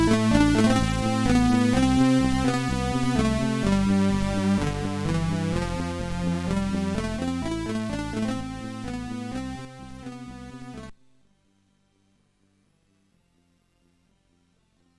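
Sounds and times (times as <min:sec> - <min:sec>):
MOS6581 SID chip synthesizer sound: 0:00.0 - 0:10.9.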